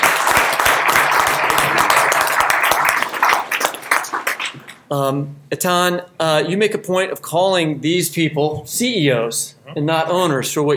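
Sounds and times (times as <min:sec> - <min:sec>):
crowd applauding: 0:00.0 - 0:04.8
speech: 0:04.9 - 0:10.7.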